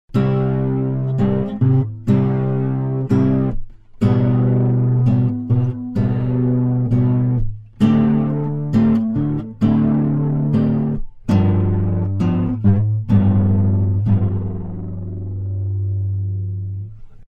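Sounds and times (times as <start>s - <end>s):
lo-fi tape music: 0.1s - 16.9s.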